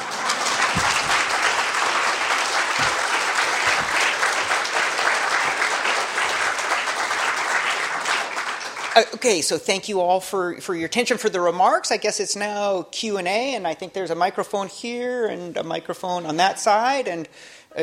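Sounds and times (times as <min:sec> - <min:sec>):
audience applause: 0:00.0 - 0:09.3
speech: 0:09.0 - 0:17.8.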